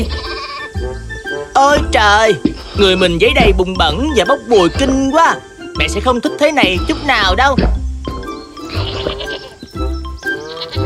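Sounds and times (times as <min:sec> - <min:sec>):
speech: 0:00.0 - 0:00.2, 0:01.6 - 0:07.8
sheep bleating: 0:00.0 - 0:00.8, 0:08.6 - 0:09.6, 0:10.4 - 0:10.8.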